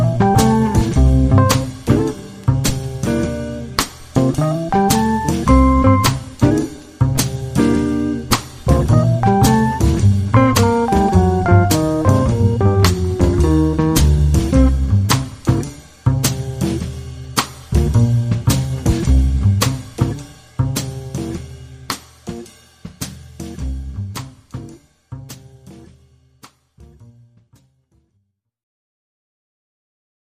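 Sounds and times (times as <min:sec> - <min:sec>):
jazzy music: 0:00.0 - 0:17.0, 0:17.7 - 0:21.2.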